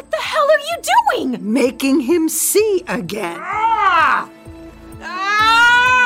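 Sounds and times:
speech: 0.7 - 4.4
man screaming in pain: 3.4 - 4.3, 5.0 - 6.0.

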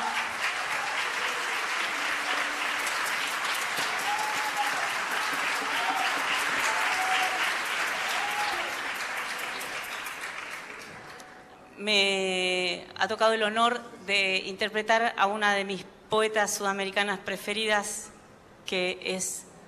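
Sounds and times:
audience applause: 0.0 - 11.2
speech: 11.8 - 12.3, 13.0 - 18.1, 18.7 - 19.5.

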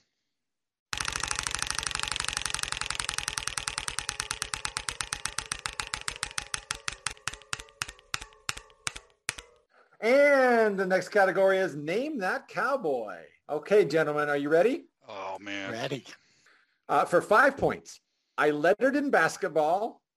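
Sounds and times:
game show prize wheel spinning with clicking ticks: 0.9 - 9.7
speech: 10.0 - 16.2, 16.9 - 20.0.

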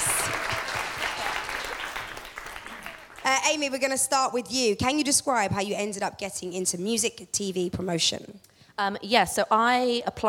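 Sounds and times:
audience applause for the panel: 0.0 - 3.3
speech: 3.3 - 10.2.

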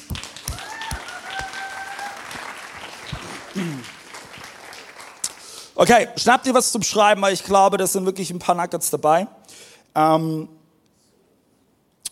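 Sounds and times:
audience applause: 0.0 - 5.8
speech: 3.6 - 4.0, 5.8 - 10.6.

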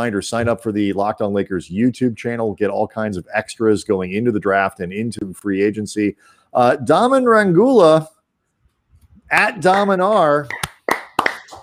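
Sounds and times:
speech: 0.0 - 8.2, 9.3 - 10.7
clapping: 9.7 - 11.6.

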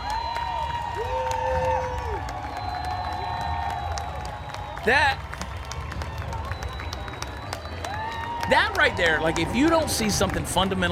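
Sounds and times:
crowd applauding at the Seattle Pride Parade: 0.0 - 10.9
speech: 4.8 - 5.3, 8.5 - 10.9.

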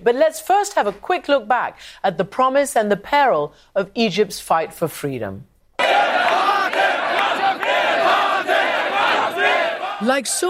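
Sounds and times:
speech: 0.0 - 6.9, 10.0 - 10.4
massive crowd chanting in a square: 5.8 - 10.4.

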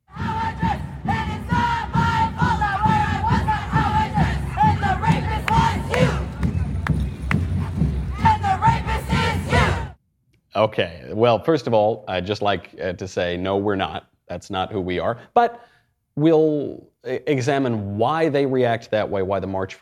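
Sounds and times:
people saying poetry: 0.0 - 6.5, 8.1 - 10.0
people rapping: 0.1 - 6.7, 8.1 - 10.0
protest crowd yelling: 0.1 - 10.0
speech: 10.6 - 19.8.

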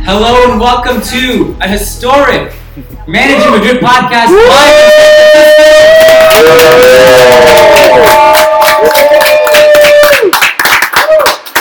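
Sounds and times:
speech: 0.1 - 9.4
live audience in San Francisco whooping and shouting: 4.3 - 10.4
live audience in San Francisco clapping: 5.8 - 11.6.

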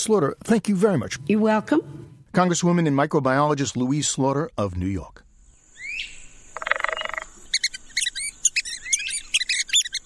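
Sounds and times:
speech: 0.0 - 5.2
red-cockaded woodpecker calling: 5.7 - 10.0.

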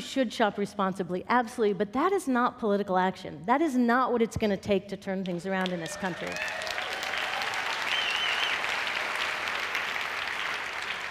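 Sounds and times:
speech: 0.1 - 6.7
audience clapping: 5.6 - 11.1.

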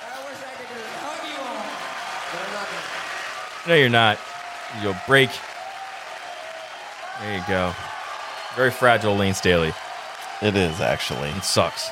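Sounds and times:
audience applause: 0.0 - 11.9
crowd cheering and shouting: 0.0 - 11.9
speech: 3.6 - 5.5, 7.2 - 7.9, 8.5 - 9.8, 10.4 - 11.9.

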